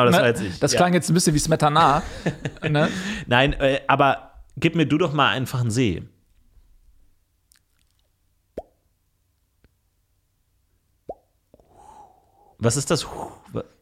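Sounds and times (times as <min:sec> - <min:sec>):
speech: 0:00.0 - 0:06.1, 0:12.6 - 0:13.8
laughter: 0:01.8 - 0:03.3
breathy hiss: 0:02.8 - 0:03.3, 0:11.6 - 0:13.8
soft mouth clicks: 0:07.5 - 0:08.8.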